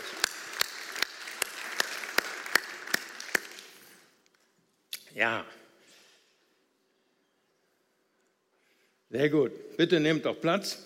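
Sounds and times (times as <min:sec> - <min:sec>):
audience clapping: 0:00.0 - 0:04.1
speech: 0:05.2 - 0:05.6, 0:09.1 - 0:10.8.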